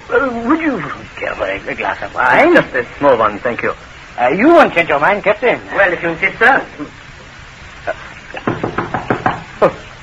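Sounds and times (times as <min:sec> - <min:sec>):
speech: 0:00.1 - 0:07.0, 0:09.6 - 0:09.8
knocking on a door: 0:08.4 - 0:09.5.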